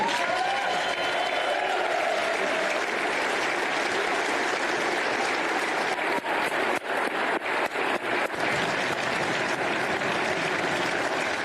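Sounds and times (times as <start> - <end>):
audience applause: 0.0 - 11.4.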